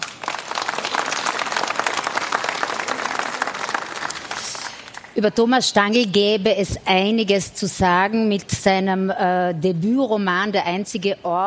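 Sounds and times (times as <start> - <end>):
crowd applauding: 0.0 - 5.2
speech: 5.2 - 11.4.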